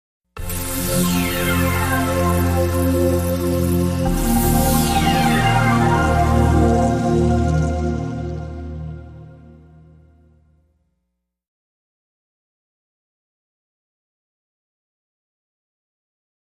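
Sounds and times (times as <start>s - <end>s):
TV logo jingle: 0.4s - 10.2s.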